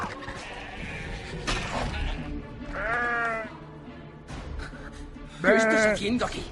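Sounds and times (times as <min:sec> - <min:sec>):
sheep bleating during shearing in a film scene: 0:00.2 - 0:01.3, 0:02.7 - 0:03.5
speech: 0:05.4 - 0:06.4.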